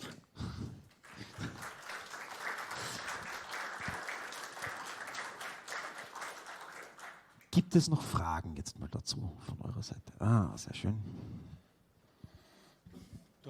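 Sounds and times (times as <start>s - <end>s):
audience applause: 0.9s - 7.5s
speech: 7.6s - 11.6s.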